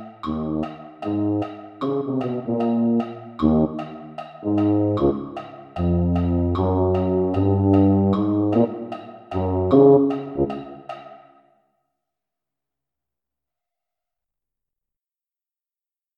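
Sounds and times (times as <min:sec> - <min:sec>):
tuba: 0:00.0 - 0:11.0.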